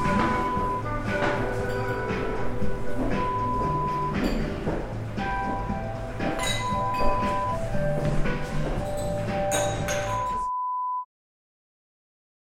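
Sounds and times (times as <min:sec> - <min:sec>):
restaurant ambience: 0:00.0 - 0:10.6.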